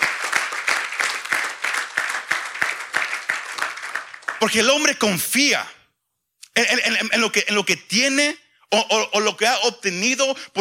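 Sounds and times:
audience applauding: 0:00.0 - 0:04.9
speech: 0:04.4 - 0:05.8, 0:06.6 - 0:10.5.

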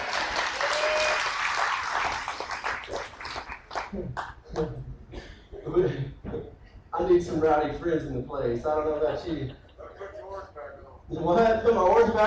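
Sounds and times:
crowd clapping: 0:00.0 - 0:04.7, 0:11.7 - 0:12.2
speech: 0:03.9 - 0:04.9, 0:07.2 - 0:09.6, 0:11.1 - 0:12.2.

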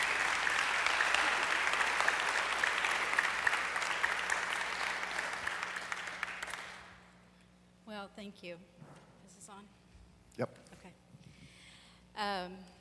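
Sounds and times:
audience applause: 0:00.0 - 0:07.1
speech: 0:08.4 - 0:08.8, 0:09.5 - 0:09.8, 0:10.4 - 0:11.1, 0:12.2 - 0:12.8.

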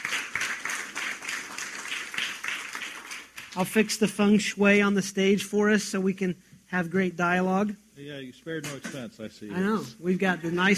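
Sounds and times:
audience clapping to welcome a guest at a leadership talk: 0:00.0 - 0:04.0
speech: 0:03.6 - 0:10.7.

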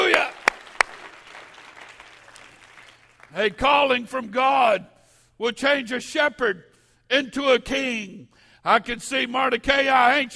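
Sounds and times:
audience clapping hands: 0:00.0 - 0:03.6
speech: 0:03.4 - 0:10.3.

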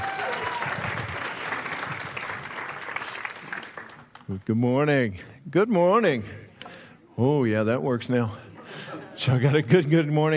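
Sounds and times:
faint cheers: 0:00.0 - 0:01.1
audience applause: 0:00.0 - 0:04.3
speech: 0:04.3 - 0:06.4, 0:07.2 - 0:08.5, 0:09.2 - 0:10.3.

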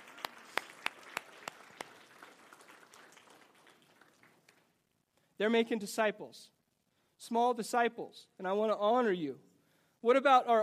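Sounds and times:
audience applauding: 0:00.0 - 0:04.8
speech: 0:05.4 - 0:06.6, 0:07.2 - 0:10.6.

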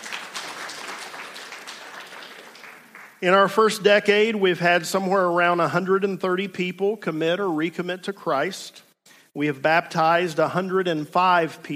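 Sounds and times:
audience clapping: 0:00.0 - 0:03.5
speech: 0:03.2 - 0:11.7.

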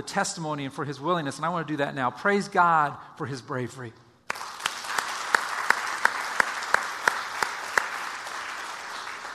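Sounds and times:
speech: 0:00.0 - 0:04.0
audience applause: 0:04.3 - 0:09.3.

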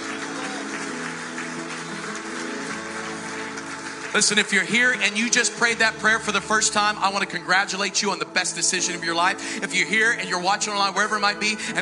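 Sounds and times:
church congregation shouting praise: 0:00.0 - 0:08.3
church congregation applauding: 0:00.0 - 0:11.8
speech: 0:04.1 - 0:11.8.

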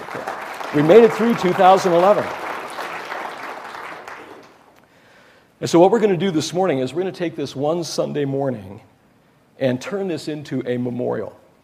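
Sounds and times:
audience applause: 0:00.0 - 0:04.7
speech: 0:00.7 - 0:02.4, 0:05.6 - 0:08.9, 0:09.6 - 0:11.4.

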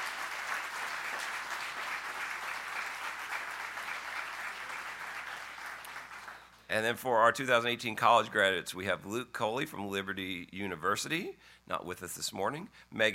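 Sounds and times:
crowd applause: 0:00.0 - 0:06.6
speech: 0:06.7 - 0:13.1.

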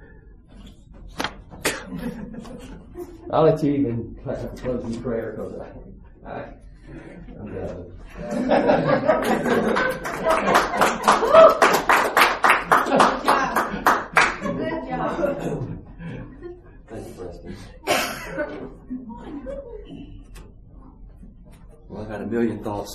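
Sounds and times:
laughter: 0:01.6 - 0:03.6, 0:06.9 - 0:20.2
speech: 0:03.3 - 0:11.7, 0:19.4 - 0:22.9
audience clapping: 0:09.2 - 0:14.6.

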